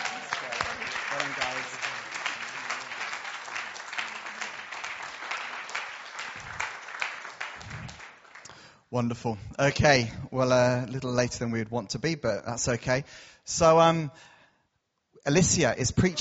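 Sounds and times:
audience applauding and cheering: 0.0 - 8.7
speech: 8.9 - 14.3, 15.2 - 16.1.

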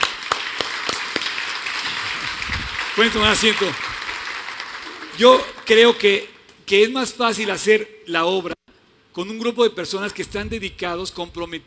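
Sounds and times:
audience applauding: 0.0 - 6.1
speech: 3.0 - 3.9, 5.2 - 8.6, 9.2 - 11.6.

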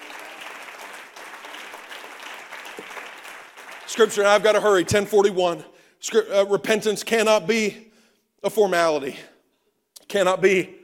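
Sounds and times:
audience clapping hands: 0.0 - 5.3
speech: 3.9 - 9.3, 10.1 - 10.8.

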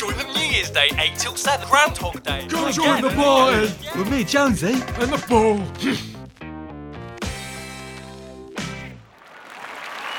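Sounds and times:
speech: 0.6 - 6.1
capacity crowd cheering: 9.0 - 10.1.

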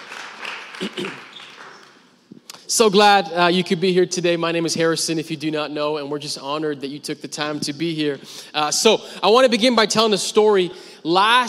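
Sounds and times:
audience clapping hands: 0.0 - 2.2
speech: 0.8 - 1.3, 2.7 - 11.4.

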